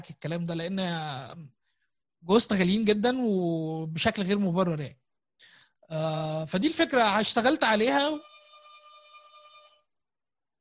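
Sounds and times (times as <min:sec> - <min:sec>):
speech: 0:00.0 - 0:01.6, 0:02.2 - 0:08.3
doorbell ringing: 0:08.2 - 0:09.8.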